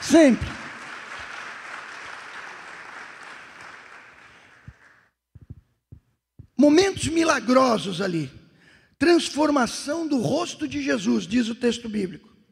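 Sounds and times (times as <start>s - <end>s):
audience applause: 0.0s - 5.1s
speech: 0.1s - 0.6s, 6.6s - 8.4s, 9.0s - 12.3s.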